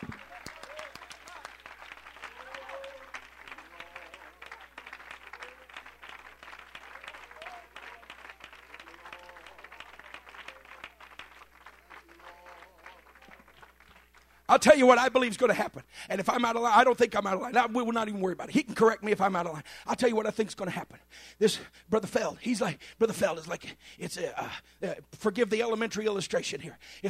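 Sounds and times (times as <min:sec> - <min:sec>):
audience clapping hands: 0:00.0 - 0:15.2
speech: 0:14.6 - 0:27.0.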